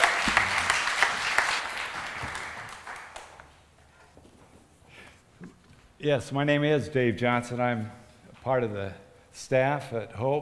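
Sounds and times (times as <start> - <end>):
applause welcoming a guest pastor at Hope church in Des Moines: 0.0 - 3.7
speech: 6.0 - 10.3.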